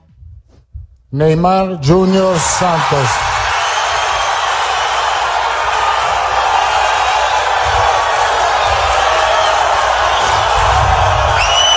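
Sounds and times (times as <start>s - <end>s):
speech: 1.1s - 3.2s
fans and journalists cheering Neymar's arrival at a Brazil press conference: 1.9s - 11.7s
whistles: 3.4s - 11.7s.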